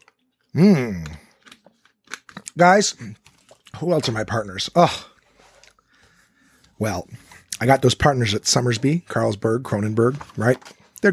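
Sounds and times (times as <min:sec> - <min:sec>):
speech: 0:00.5 - 0:01.2, 0:02.6 - 0:03.2, 0:03.8 - 0:05.1, 0:06.8 - 0:11.1
person drinking water: 0:00.5 - 0:03.8.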